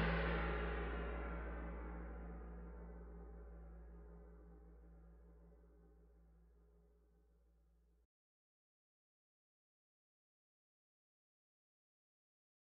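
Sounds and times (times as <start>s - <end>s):
musical accompaniment only: 0.0s - 3.8s.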